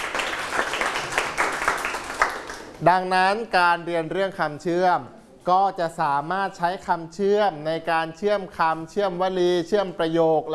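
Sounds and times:
applause: 0.0 - 2.8
speech: 2.8 - 10.5.

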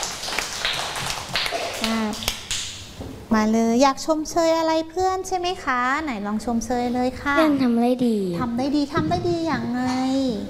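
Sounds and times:
classroom people clapping: 0.0 - 2.8
speech: 3.3 - 10.4.

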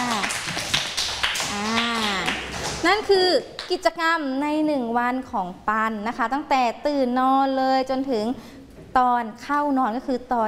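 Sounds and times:
schoolchildren clapping for a classmate: 0.0 - 3.7
speech: 2.8 - 10.4.

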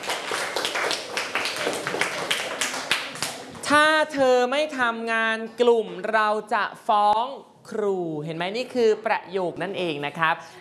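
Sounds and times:
students clapping: 0.0 - 3.6
speech: 3.7 - 10.5.

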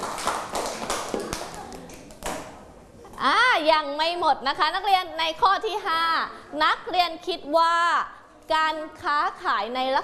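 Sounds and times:
students clapping: 0.0 - 2.5
speech: 3.2 - 10.0.

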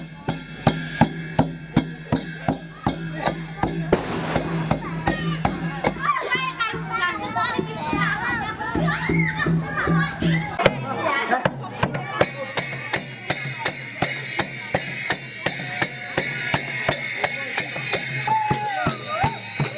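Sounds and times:
crisp rhythmic tapping beats: 0.0 - 19.7
excited children chattering, calling and squealing outdoors: 0.0 - 19.7.

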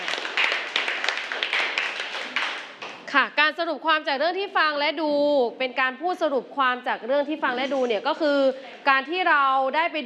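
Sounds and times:
class clapping: 0.0 - 3.1
speech: 3.1 - 10.0.

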